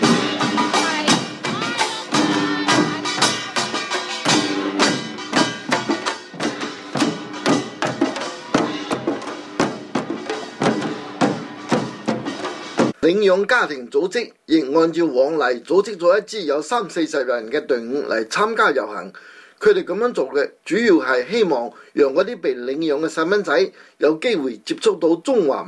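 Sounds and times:
waist drums beaten by drum troupe: 0.0s - 13.0s
speech: 13.0s - 25.6s.

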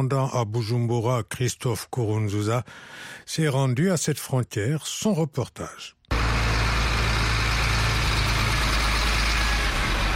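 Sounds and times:
speech: 0.0s - 6.0s
large transport trucks idling at border: 6.1s - 10.1s.

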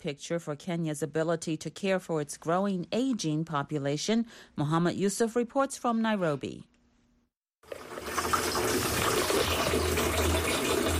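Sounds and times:
speech: 0.0s - 6.7s
water running from a tap: 7.6s - 10.9s.

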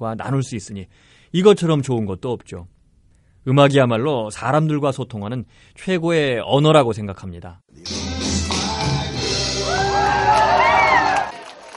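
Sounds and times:
speech: 0.0s - 2.8s, 3.4s - 8.1s
audience cheering: 9.4s - 11.7s.

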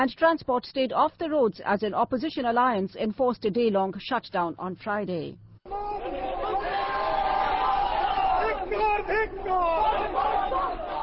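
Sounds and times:
speech: 0.0s - 5.4s, 8.7s - 10.8s
crowd shouting: 5.7s - 11.0s.

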